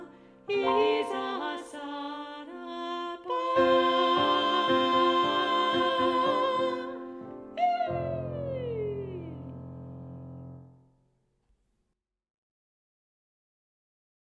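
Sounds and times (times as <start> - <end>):
vocal: 0.0 - 9.6.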